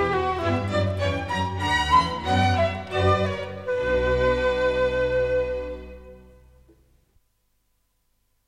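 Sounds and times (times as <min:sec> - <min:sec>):
orchestral minuet in B minor: 0:00.0 - 0:06.6.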